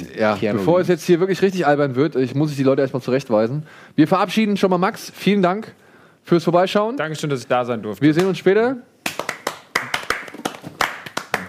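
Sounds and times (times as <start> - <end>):
speech: 0.2 - 8.9
applause, clapping hands: 9.0 - 11.4.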